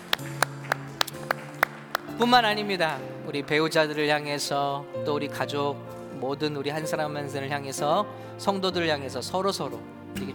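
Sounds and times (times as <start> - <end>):
sharp rhythmic claps: 0.0 - 4.0
speech: 2.2 - 10.3.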